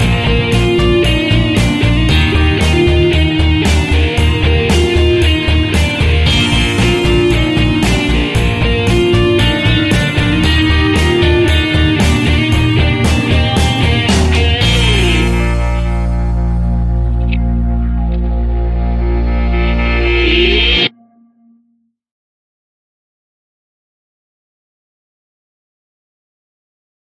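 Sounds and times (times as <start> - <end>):
promotional pop guitar music: 0.0 - 21.4.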